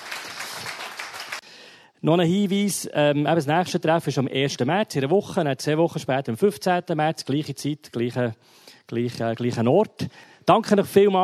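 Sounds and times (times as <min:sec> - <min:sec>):
audience applause: 0:00.0 - 0:01.4
speech: 0:02.0 - 0:11.2.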